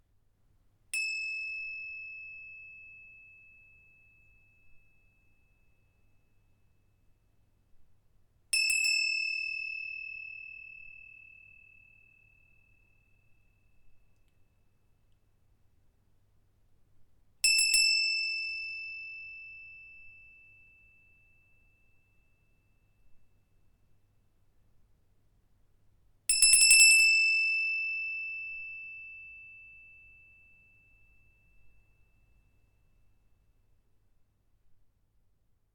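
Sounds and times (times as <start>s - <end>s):
bell: 1.0s - 6.9s, 8.6s - 14.6s, 17.4s - 23.5s, 26.3s - 33.4s.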